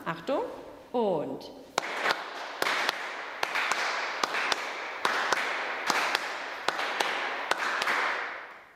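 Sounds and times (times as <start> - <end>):
speech: 0.1 - 1.7
hands clapping a short-long gallop rhythm: 1.8 - 8.7.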